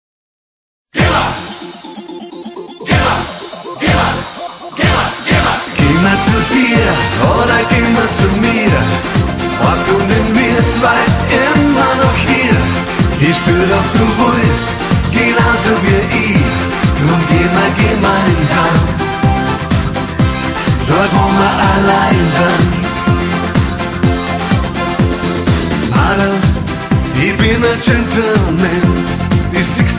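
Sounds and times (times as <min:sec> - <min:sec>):
disco music: 0:00.9 - 0:29.9.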